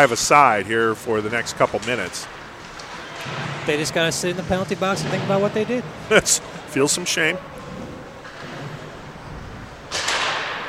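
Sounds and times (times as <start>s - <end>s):
speech: 0.0s - 2.4s, 3.2s - 7.8s
hockey game crowd noise: 0.0s - 10.0s
hockey puck shot deflected during a hockey game: 1.7s - 6.1s, 9.9s - 10.6s.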